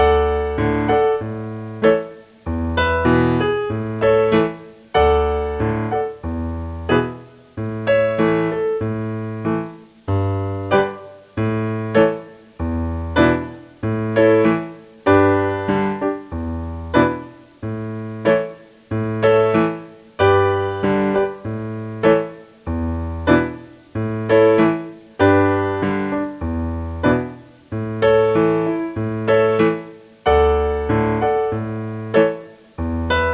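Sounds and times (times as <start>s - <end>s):
piano: 0.0s - 33.3s.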